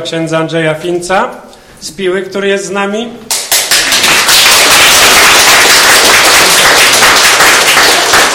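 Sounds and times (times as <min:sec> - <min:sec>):
speech: 0:00.0 - 0:03.3
crowd applause: 0:03.5 - 0:08.3.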